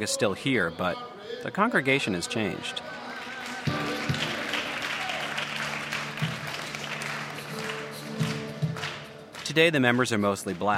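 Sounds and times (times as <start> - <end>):
speech: 0.0 - 3.8, 9.6 - 10.7
audience clapping: 2.3 - 10.7.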